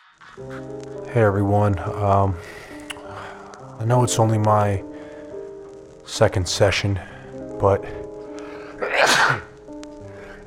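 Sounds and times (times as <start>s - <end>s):
speech: 0.4s - 2.6s, 3.8s - 4.9s, 6.1s - 8.0s
person sneezing: 8.8s - 9.5s.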